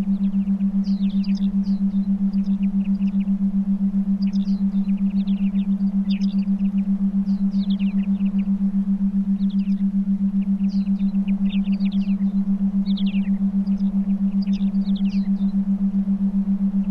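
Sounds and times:
binaural theta meditation beats: 0.0 - 16.8
forest ambience: 0.0 - 16.8.

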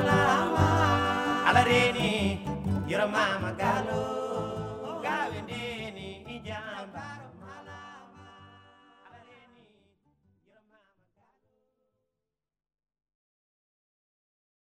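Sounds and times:
desert blues music: 0.0 - 7.1.

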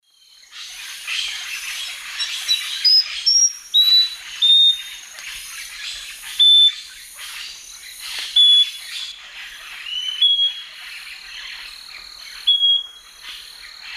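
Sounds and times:
Scaly-breasted Wren singing pure whistled notes: 2.2 - 5.0, 6.2 - 6.9, 8.3 - 9.2, 9.8 - 10.8, 12.4 - 13.1.

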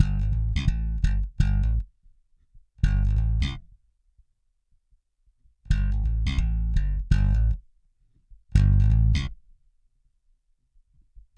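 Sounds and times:
hip-hop bass: 0.0 - 1.8, 2.8 - 3.6, 5.7 - 7.6, 8.6 - 9.3.

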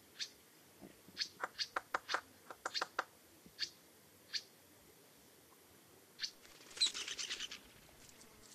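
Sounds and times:
Strickland's woodpecker chattering rattle: 1.2 - 3.7, 6.2 - 7.8.

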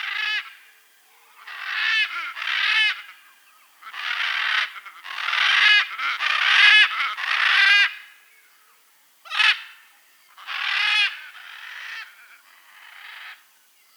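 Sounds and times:
blue-and-yellow macaw squawking in the Amazon region: 1.4 - 8.1, 9.3 - 9.8, 10.4 - 13.4.

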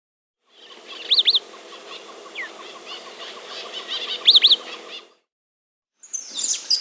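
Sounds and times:
Thick-billed euphonia calling in South America: 0.5 - 5.2.

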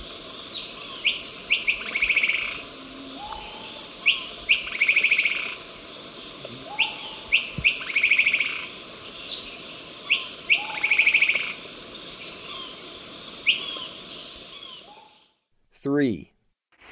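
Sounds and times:
Brown-rumped Foliage-gleaner calling in South American eastern lowlands: 0.5 - 5.7, 6.4 - 11.6, 12.3 - 15.2.

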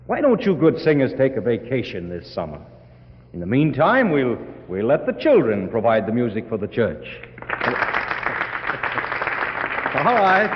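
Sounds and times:
speech: 0.1 - 7.8, 10.0 - 10.5
applause: 7.4 - 10.5.

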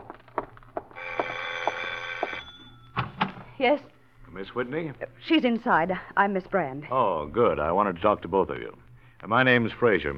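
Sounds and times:
doorbell ringing: 1.0 - 3.1
speech: 3.6 - 10.1.

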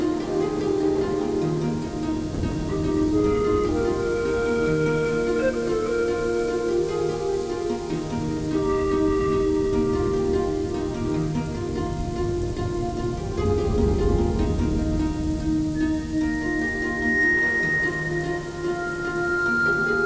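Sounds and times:
rain: 0.0 - 20.0.

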